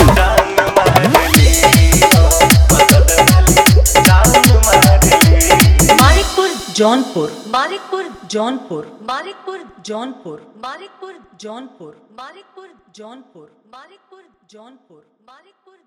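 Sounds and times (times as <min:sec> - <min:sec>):
dholki bass mix: 0:00.0 - 0:08.0.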